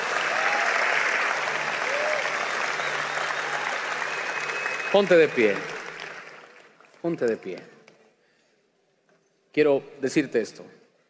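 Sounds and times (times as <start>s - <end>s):
audience applause: 0.0s - 7.6s
speech: 4.9s - 5.8s, 7.0s - 7.8s, 9.6s - 10.8s.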